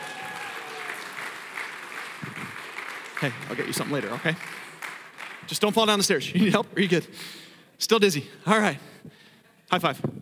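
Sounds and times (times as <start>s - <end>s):
crowd clapping: 0.0s - 6.2s
speech: 3.2s - 4.7s, 5.5s - 10.2s.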